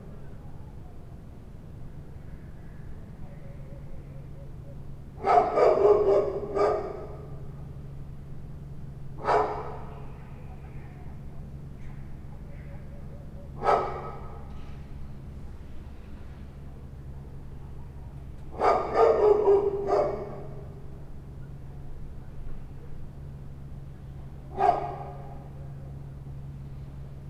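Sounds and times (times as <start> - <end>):
two dogs at night: 5.2 - 7.5, 9.2 - 10.1, 11.8 - 14.6, 18.5 - 20.8, 24.5 - 25.6.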